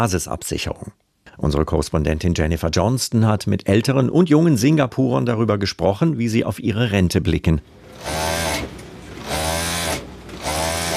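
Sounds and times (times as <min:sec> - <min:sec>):
speech: 0:00.0 - 0:08.7
sewing machine stitching: 0:07.9 - 0:10.9.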